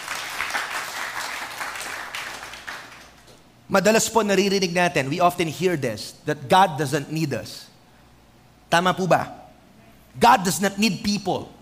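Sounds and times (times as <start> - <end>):
audience applause: 0.0 - 3.2
speech: 3.7 - 7.7, 8.7 - 9.4, 10.2 - 11.6.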